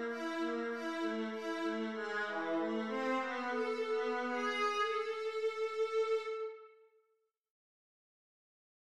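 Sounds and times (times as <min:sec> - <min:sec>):
viola concerto in A minor: 0:00.0 - 0:06.6.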